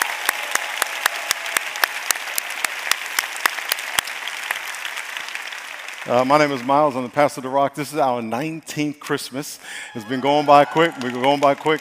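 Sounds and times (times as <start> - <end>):
audience applause: 0.0 - 7.4, 9.8 - 11.7
speech: 6.1 - 11.7.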